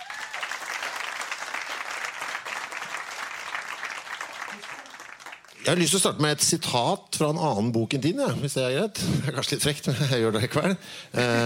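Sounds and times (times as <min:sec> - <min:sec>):
audience applause for an author at a book event: 0:00.0 - 0:05.8
speech: 0:05.6 - 0:11.4.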